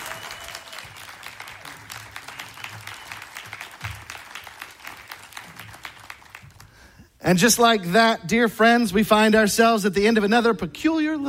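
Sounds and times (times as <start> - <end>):
crowd applauding: 0.0 - 6.9
speech: 7.3 - 11.2.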